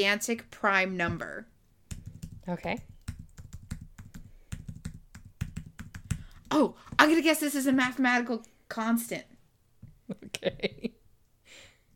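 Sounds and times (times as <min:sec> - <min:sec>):
speech: 0:00.0 - 0:01.5, 0:02.4 - 0:02.9, 0:06.5 - 0:09.3, 0:10.1 - 0:10.9
typing a long binary number on a computer keyboard: 0:01.9 - 0:06.5.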